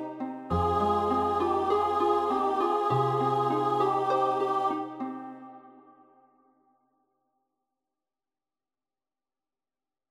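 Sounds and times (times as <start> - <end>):
soprano choir singing: 0.0 - 6.2.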